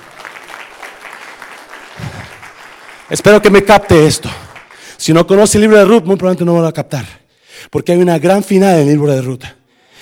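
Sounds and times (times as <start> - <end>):
audience applause: 0.0 - 4.9
speech: 3.1 - 4.4, 5.0 - 9.6.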